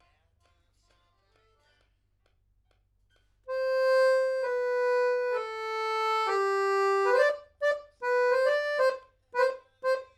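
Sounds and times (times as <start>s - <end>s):
accordion: 3.5s - 10.1s.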